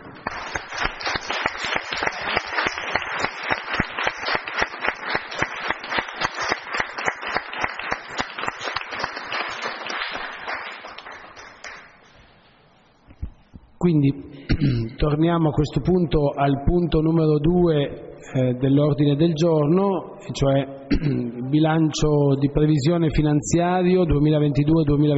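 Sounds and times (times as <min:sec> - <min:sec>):
council members applauding: 0:00.0 - 0:12.1
speech: 0:13.9 - 0:25.1.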